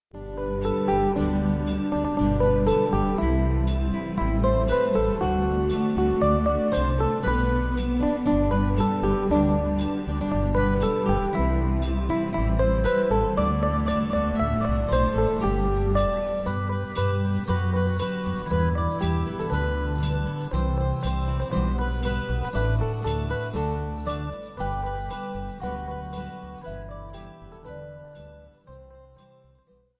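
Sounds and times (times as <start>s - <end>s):
jingle: 0.6s - 29.4s.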